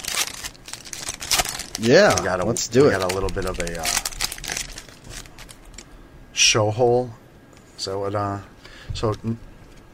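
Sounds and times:
trading card pack wrappers ripping open: 0.0s - 5.8s
speech: 1.8s - 4.1s, 6.5s - 7.2s, 7.8s - 9.5s.

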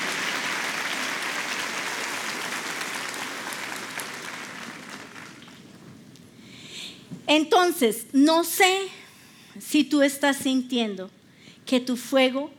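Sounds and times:
crowd applauding: 0.0s - 5.8s
speech: 7.3s - 9.0s, 9.7s - 12.5s.

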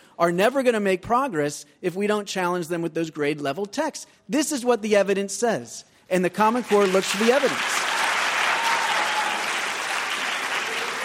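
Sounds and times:
speech: 0.2s - 7.9s
audience applause: 6.5s - 11.0s.

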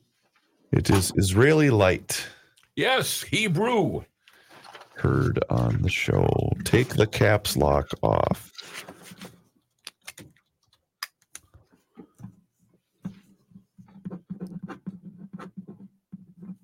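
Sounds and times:
speech: 0.7s - 4.1s, 5.0s - 8.9s
pen writing on a glass table: 13.8s - 16.6s.

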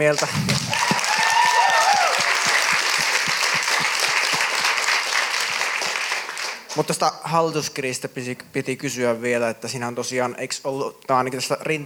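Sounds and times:
speech: 0.0s - 0.8s, 6.8s - 11.8s
audience applause: 0.0s - 6.9s.

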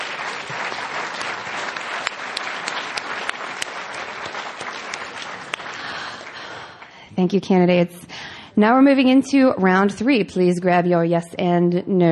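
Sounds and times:
audience applause: 0.0s - 6.9s
speech: 7.2s - 12.1s.

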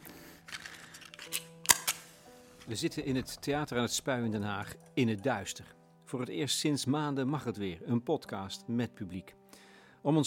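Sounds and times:
lighter clicks lighting a candle: 1.2s - 2.2s
speech: 2.7s - 9.4s, 10.0s - 10.2s.

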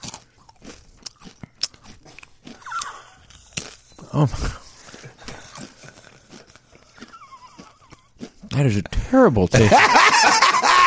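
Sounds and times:
wet chewing: 0.0s - 8.6s
whole Dorito chip crunching: 0.0s - 8.6s
speech: 4.2s - 4.6s, 8.6s - 10.4s
laughter: 9.5s - 10.8s.

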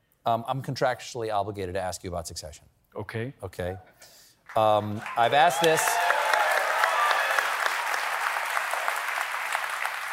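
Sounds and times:
speech: 0.2s - 6.0s
audience applause: 4.5s - 10.1s.

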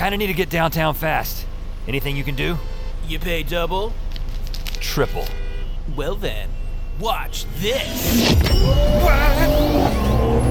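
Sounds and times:
speech: 0.0s - 4.0s, 4.8s - 10.4s
car accelerating hard: 8.0s - 10.4s.

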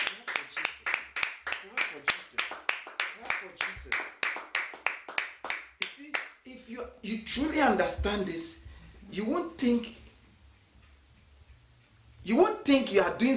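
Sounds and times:
audience clapping in rhythm: 0.0s - 6.4s
speech: 7.0s - 10.0s, 12.3s - 13.3s.

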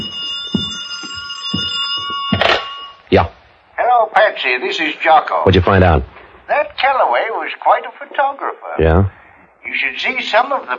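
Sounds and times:
telephone ringing: 0.0s - 3.1s
speech: 3.1s - 3.4s, 4.0s - 10.7s.

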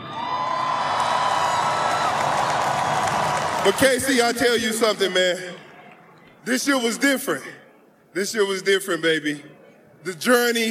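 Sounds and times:
crowd applause and cheering: 0.0s - 4.6s
speech: 3.6s - 5.6s, 6.4s - 10.6s.

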